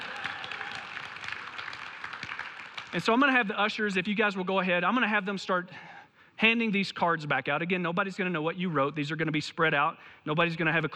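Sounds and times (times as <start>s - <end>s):
audience applause: 0.0s - 3.0s
speech: 2.9s - 10.9s.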